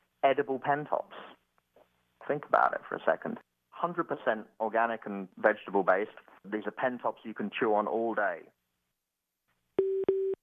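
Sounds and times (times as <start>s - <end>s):
speech: 0.2s - 1.4s, 2.3s - 8.6s
telephone call waiting tone: 9.8s - 10.4s.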